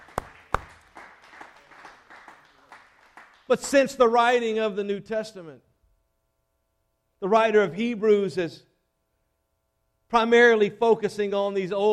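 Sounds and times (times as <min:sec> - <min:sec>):
audience hand clapping: 0:00.0 - 0:04.2
speech: 0:03.5 - 0:05.7, 0:07.2 - 0:08.7, 0:10.1 - 0:11.9.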